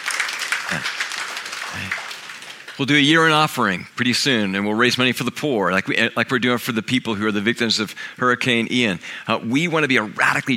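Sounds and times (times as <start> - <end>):
clapping for money raised: 0.0 - 3.0
speech: 0.7 - 1.0, 1.7 - 2.0, 2.8 - 10.5.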